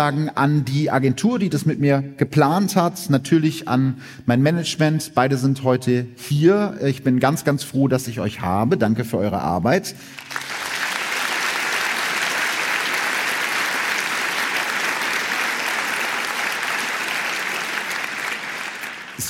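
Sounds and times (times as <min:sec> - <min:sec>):
speech: 0:00.0 - 0:10.6
audience applause: 0:10.2 - 0:19.2.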